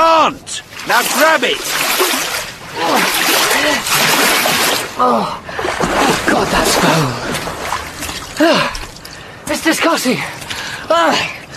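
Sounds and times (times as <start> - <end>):
speech: 0.2 - 7.4, 8.4 - 8.8, 9.5 - 11.4
person thrashing and splashing in cold canal water: 0.7 - 9.2.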